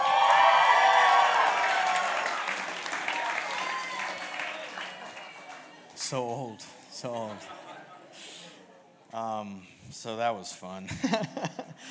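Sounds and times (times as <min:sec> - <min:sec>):
audience whistling: 0:00.0 - 0:05.6
speech: 0:06.1 - 0:07.6, 0:09.1 - 0:11.8
laughter: 0:07.0 - 0:08.7, 0:10.9 - 0:11.8.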